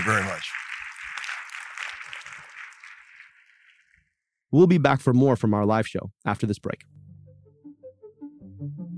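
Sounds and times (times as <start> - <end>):
speech: 0.0 - 0.6, 4.5 - 6.9
audience applause: 0.0 - 4.0.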